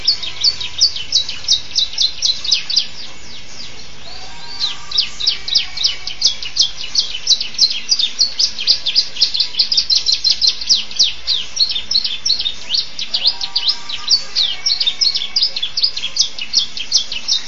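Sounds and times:
champion canary song: 0:00.0 - 0:17.4.

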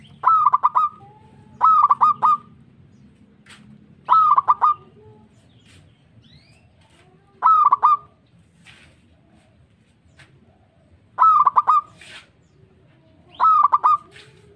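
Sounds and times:
local-type zebra dove cooing: 0:00.0 - 0:02.6, 0:04.0 - 0:05.2, 0:07.4 - 0:08.2, 0:10.4 - 0:12.0, 0:13.0 - 0:14.5.

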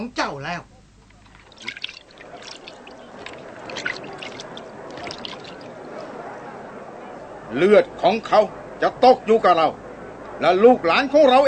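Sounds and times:
speech: 0:00.0 - 0:00.7, 0:01.6 - 0:02.4, 0:07.5 - 0:09.8, 0:10.4 - 0:11.4
water sloshing in a basin as hands are washed: 0:01.1 - 0:06.1.

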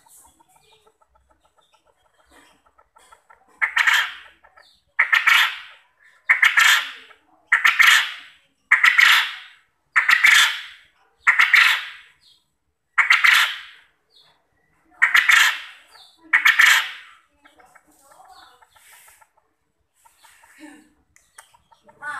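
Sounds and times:
quail calling: 0:00.0 - 0:14.0, 0:14.8 - 0:22.1.

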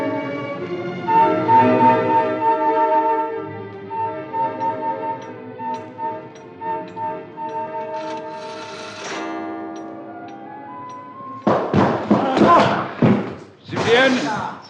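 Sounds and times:
steady tonal drone: 0:01.2 - 0:11.2
door being battered and broken down: 0:11.4 - 0:14.2.

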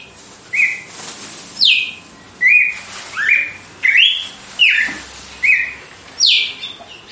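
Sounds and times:
female red-cowled cardinal singing whistled song: 0:00.5 - 0:00.9, 0:01.6 - 0:06.5.

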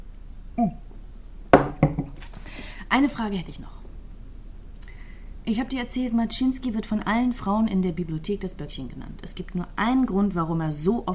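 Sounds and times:
speech: 0:00.6 - 0:00.8, 0:02.9 - 0:03.8, 0:05.5 - 0:11.1
glasses clinking in a toast: 0:01.6 - 0:02.2.

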